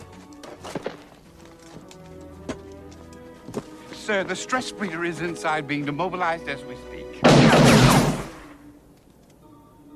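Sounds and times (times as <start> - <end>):
speech: 4.1 - 7.7
gunshot from the film Demolition Man: 7.2 - 8.6.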